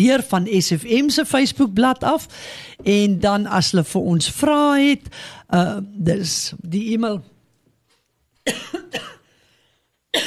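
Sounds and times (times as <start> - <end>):
speech: 0.0 - 7.3, 8.5 - 8.8
speaker on a pharmacy health talk coughing: 8.5 - 9.3.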